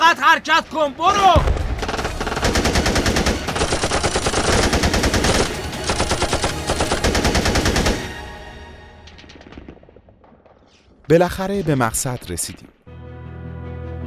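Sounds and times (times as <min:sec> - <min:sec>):
speech: 0:00.2 - 0:01.6, 0:11.1 - 0:12.8
automatic gunfire: 0:01.6 - 0:08.2.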